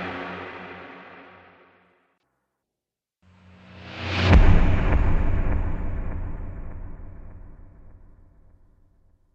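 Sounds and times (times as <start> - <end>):
trailer hits: 3.4 - 8.6.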